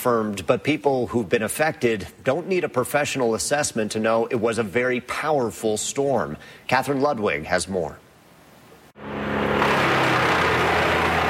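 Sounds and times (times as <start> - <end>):
speech: 0.0 - 8.0
wood chipper shredding uprooted trees: 9.4 - 11.2.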